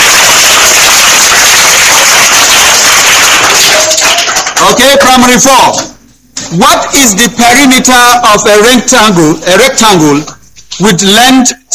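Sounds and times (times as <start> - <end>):
classroom applause: 0.0 - 5.8
speech: 4.7 - 5.9, 6.5 - 11.7.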